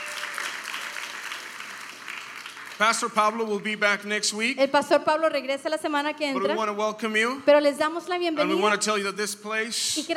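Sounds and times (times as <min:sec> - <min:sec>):
church congregation applauding welcoming first-time visitors: 0:00.0 - 0:04.1
speech: 0:02.8 - 0:10.1.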